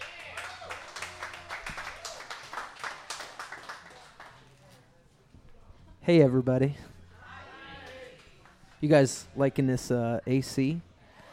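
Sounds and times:
audience applause welcoming a speaker at the Creation NE 2018 artist talkback: 0.0 - 4.4
speech: 6.1 - 6.9, 8.8 - 10.9.

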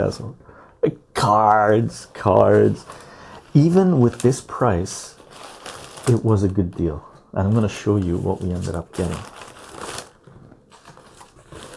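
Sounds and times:
speech: 0.0 - 5.2, 6.1 - 9.4
newspaper packing crinkling while trading cards are unpacked: 2.0 - 11.7.

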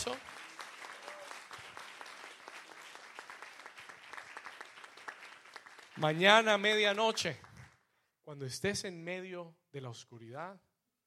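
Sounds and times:
speech: 0.0 - 0.3, 6.0 - 7.5, 8.3 - 10.7
audience applause: 0.0 - 7.8.

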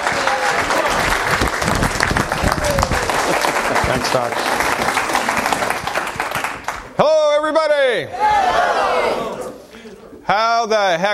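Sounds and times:
audience clapping welcoming a doctor onto the stage in San Diego: 0.0 - 7.0
crowd cheering: 0.0 - 7.0, 8.0 - 9.7
speech: 4.1 - 4.6, 7.9 - 8.6, 10.3 - 11.1.

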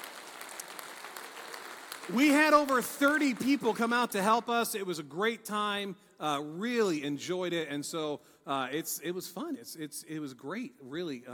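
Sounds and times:
crowd clapping: 0.0 - 4.4
speech: 2.1 - 11.3.

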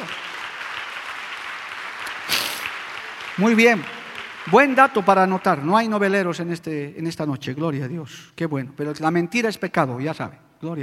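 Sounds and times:
audience applause: 0.0 - 6.1
speech: 3.4 - 10.8.

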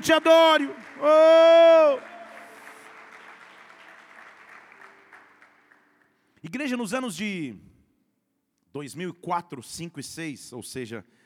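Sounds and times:
speech: 0.0 - 2.1, 6.4 - 7.7, 8.7 - 11.2
audience applause: 0.0 - 6.1.

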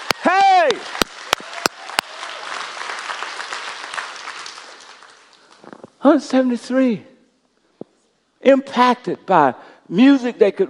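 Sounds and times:
audience applause: 0.0 - 5.6
sharp claps: 0.0 - 5.7
speech: 6.0 - 7.1, 8.4 - 10.6.

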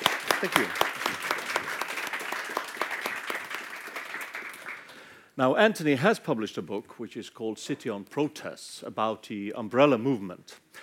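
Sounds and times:
audience applause greeting a guest speaker at a talk: 0.0 - 5.1
speech: 0.4 - 0.9, 5.4 - 10.6.

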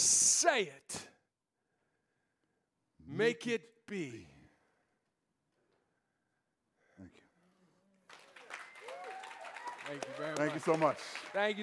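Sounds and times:
speech: 0.4 - 1.0, 3.1 - 4.3, 9.9 - 11.6
audience applause: 8.1 - 11.6.

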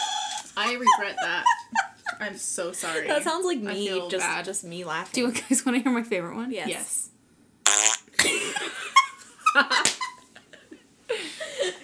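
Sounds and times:
laughter: 0.0 - 4.3, 8.2 - 11.8
speech: 0.6 - 7.0
sputtering fart noises: 7.7 - 8.2.

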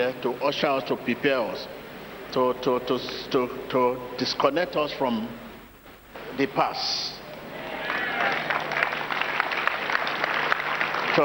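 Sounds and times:
speech: 0.0 - 5.4, 6.4 - 7.1
audience clapping: 7.6 - 11.2.

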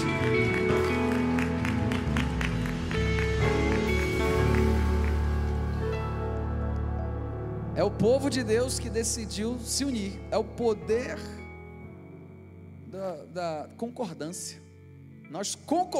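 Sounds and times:
audience applauding: 0.0 - 7.2
speech: 7.8 - 11.4, 13.0 - 14.6, 15.3 - 15.9.

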